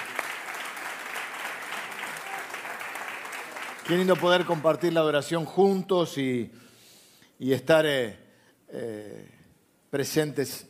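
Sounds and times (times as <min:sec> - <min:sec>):
audience applause: 0:00.0 - 0:05.2
speech: 0:03.9 - 0:06.6, 0:07.4 - 0:10.6.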